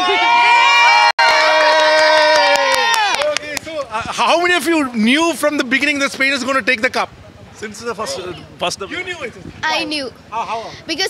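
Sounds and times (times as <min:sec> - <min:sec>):
Spanish fans cheering outside stadium: 0:00.0 - 0:03.9
speech: 0:04.2 - 0:11.0.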